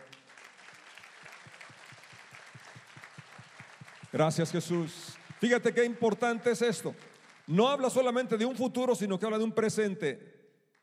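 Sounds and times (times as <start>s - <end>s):
audience applauding: 0.0s - 8.3s
speech: 4.1s - 10.3s.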